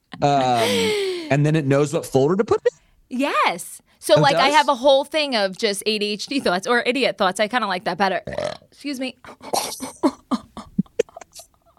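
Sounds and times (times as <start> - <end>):
speech: 0.2 - 10.0
burp sounding like a fart: 8.2 - 8.7.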